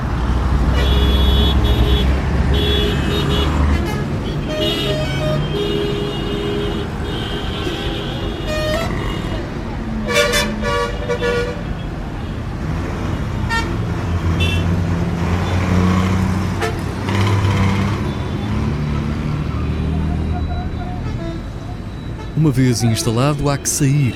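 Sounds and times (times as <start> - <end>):
dense city street traffic engines rumbling: 0.0 - 24.1
car horns tooting: 0.7 - 11.9, 13.4 - 14.8, 19.9 - 24.1
indistinct voices: 22.3 - 24.1
speech: 22.5 - 24.1.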